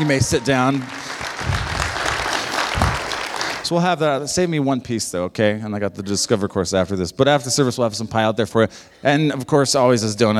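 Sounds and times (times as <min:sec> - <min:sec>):
speech: 0:00.0 - 0:01.0, 0:03.7 - 0:10.3
audience applause: 0:00.0 - 0:03.7.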